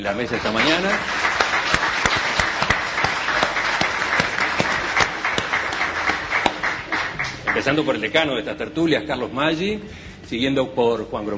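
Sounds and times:
speech: 0:00.0 - 0:01.2, 0:07.6 - 0:11.3
studio audience applause: 0:00.0 - 0:08.3.

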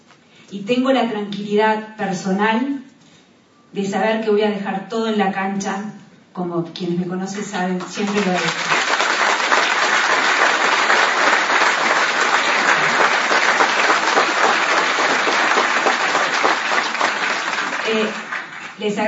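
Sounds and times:
speech: 0:00.5 - 0:02.9, 0:03.7 - 0:08.7, 0:18.8 - 0:19.0
audience applause: 0:07.8 - 0:18.8.

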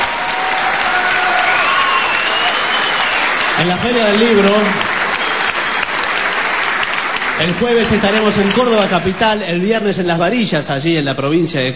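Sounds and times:
audience applause: 0:00.0 - 0:09.7
speech: 0:03.6 - 0:04.9, 0:07.4 - 0:11.7.

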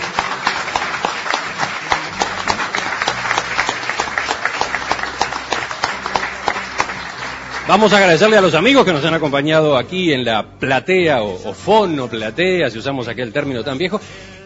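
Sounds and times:
audience applause: 0:00.0 - 0:09.4
speech: 0:07.7 - 0:14.3.

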